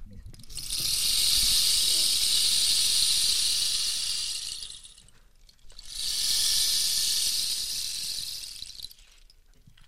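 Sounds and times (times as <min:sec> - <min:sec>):
rain stick: 0:00.3 - 0:09.8.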